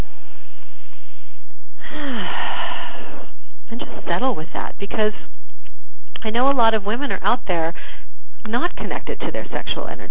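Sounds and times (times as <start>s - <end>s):
falling whistle-like wheeze: 0.0s - 3.4s
deep breath drawn in: 0.0s - 3.5s
speech: 4.1s - 5.3s, 6.2s - 7.7s, 8.5s - 10.0s.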